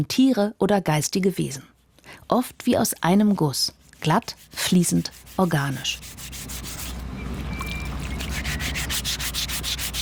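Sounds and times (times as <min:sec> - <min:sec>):
speech: 0:00.0 - 0:06.6
file rasping on a stone sculpture: 0:03.0 - 0:07.0, 0:07.8 - 0:10.0.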